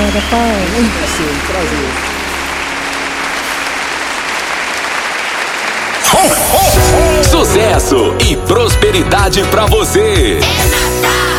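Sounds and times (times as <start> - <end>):
audience applauding: 0.0 - 8.0
speech: 0.2 - 2.2, 6.2 - 11.2.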